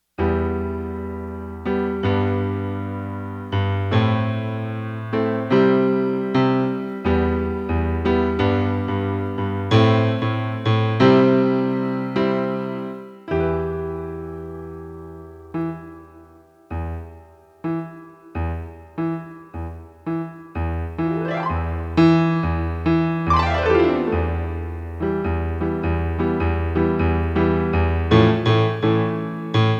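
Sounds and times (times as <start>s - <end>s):
piano: 0.0s - 29.7s.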